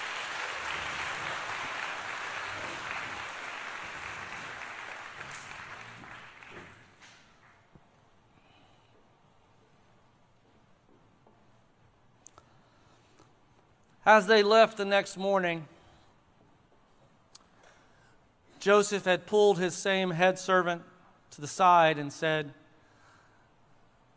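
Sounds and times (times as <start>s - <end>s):
audience applause: 0.0s - 7.7s
speech: 14.1s - 15.8s, 18.6s - 22.6s.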